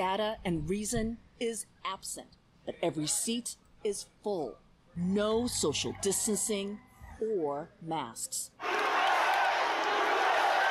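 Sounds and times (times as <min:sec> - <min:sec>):
speech: 0:00.0 - 0:08.7
indoor rally crowd chanting and cheering: 0:08.6 - 0:10.6.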